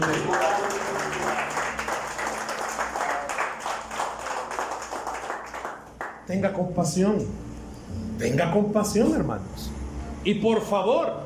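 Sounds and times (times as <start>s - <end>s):
speech: 0.0s - 0.5s, 6.3s - 7.5s, 8.2s - 11.2s
audience applause: 0.0s - 6.2s.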